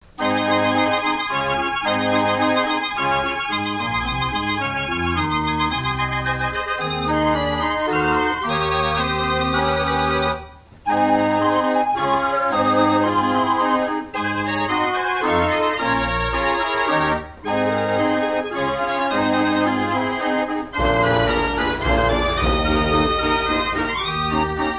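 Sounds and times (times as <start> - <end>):
Dutch street barrel organ playing: 0.0 - 24.7.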